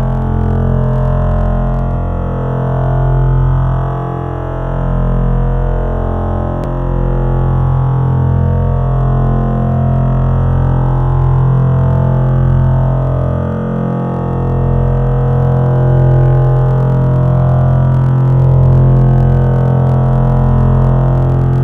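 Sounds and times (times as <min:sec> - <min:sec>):
drone: 0:00.0 - 0:21.6.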